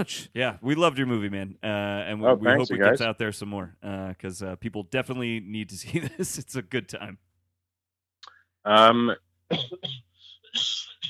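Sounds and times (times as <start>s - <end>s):
speech: 0.0s - 7.3s, 8.6s - 10.9s
loud throaty cough with voiced rasp: 9.5s - 11.0s.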